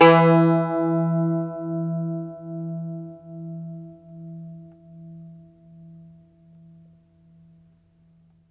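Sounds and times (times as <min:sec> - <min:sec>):
Irish bouzouki plucked strings: 0:00.0 - 0:04.1.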